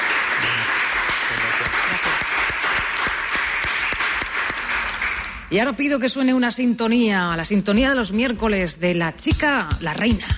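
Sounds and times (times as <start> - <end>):
crowd applause: 0.0 - 5.5
speech: 5.5 - 10.3.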